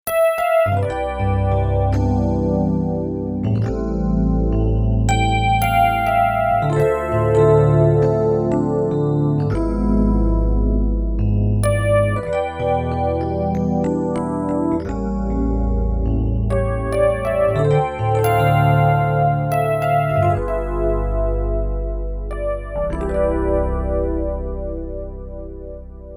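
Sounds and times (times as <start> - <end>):
Rhodes electric piano: 0.1 - 26.1.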